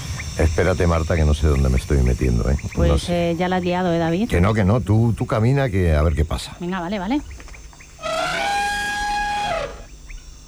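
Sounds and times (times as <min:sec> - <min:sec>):
speech: 0:00.4 - 0:07.4
elephant trumpeting: 0:08.0 - 0:10.0.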